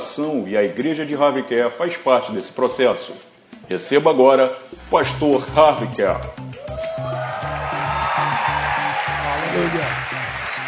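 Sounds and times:
speech: 0:00.2 - 0:07.1
audience applause: 0:06.8 - 0:10.6.

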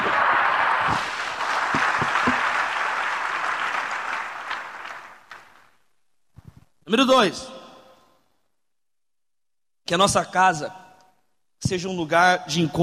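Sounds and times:
applause: 0:00.0 - 0:05.8
speech: 0:06.9 - 0:07.6, 0:09.9 - 0:10.8, 0:11.6 - 0:12.8.

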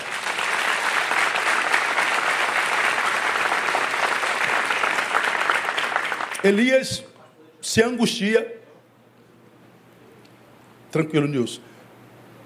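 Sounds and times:
audience applause: 0:00.0 - 0:06.6
speech: 0:06.4 - 0:08.6, 0:11.0 - 0:11.7.

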